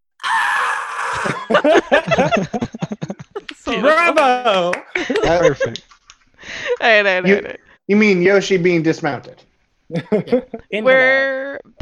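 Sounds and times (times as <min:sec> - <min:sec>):
voice imitating a video game dinosaur noise: 0:00.2 - 0:01.6
people laughing and talking: 0:01.2 - 0:05.8, 0:06.4 - 0:09.2, 0:09.9 - 0:11.5
speech: 0:01.5 - 0:02.8, 0:03.8 - 0:05.9, 0:06.8 - 0:11.8.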